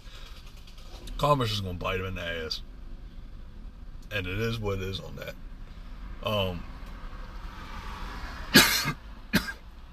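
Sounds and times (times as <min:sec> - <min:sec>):
speech: 0:01.2 - 0:02.7, 0:04.1 - 0:05.4, 0:06.2 - 0:06.7
person coughing: 0:08.5 - 0:09.6.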